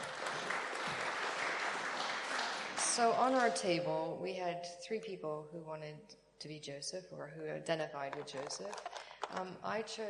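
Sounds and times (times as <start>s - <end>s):
group applauding: 0.0s - 3.5s
speech: 3.0s - 10.0s.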